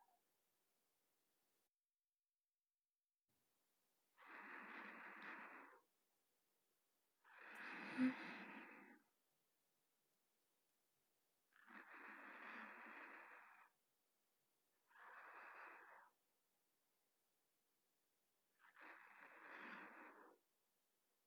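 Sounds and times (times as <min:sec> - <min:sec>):
sleeping breathing recorded with a binaural microphone: 0:04.2 - 0:05.9, 0:07.3 - 0:09.1, 0:11.6 - 0:13.7, 0:14.9 - 0:16.1, 0:18.6 - 0:20.4.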